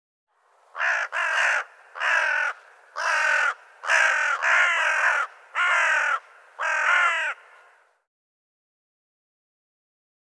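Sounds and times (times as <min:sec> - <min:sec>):
bird calling: 0:00.8 - 0:07.9.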